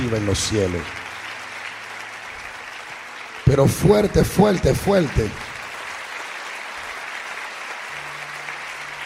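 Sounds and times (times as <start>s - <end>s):
audience applauding: 0.0s - 9.0s
speech: 0.1s - 1.0s, 3.5s - 5.5s.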